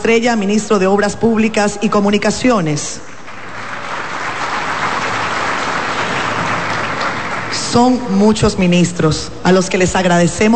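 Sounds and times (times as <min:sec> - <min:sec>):
speech: 0:00.0 - 0:03.1, 0:07.7 - 0:10.5
crowd applause: 0:03.2 - 0:08.2.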